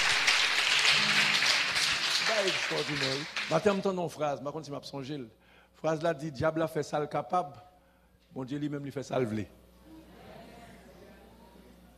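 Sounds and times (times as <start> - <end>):
audience applauding: 0.0 - 4.0
speech: 2.4 - 7.7, 8.3 - 9.6.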